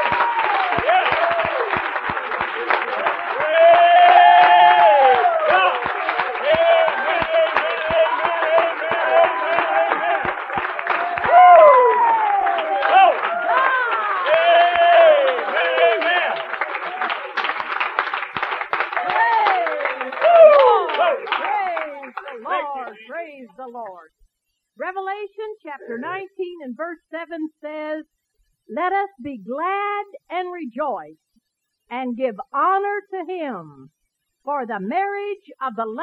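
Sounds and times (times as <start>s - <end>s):
audience clapping hands: 0.0s - 23.2s
speech: 31.9s - 36.0s.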